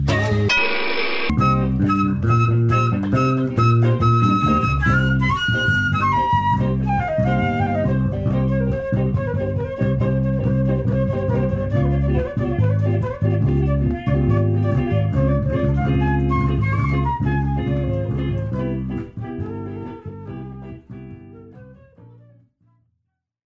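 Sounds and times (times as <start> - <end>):
jazz pop music: 0.0 - 21.7.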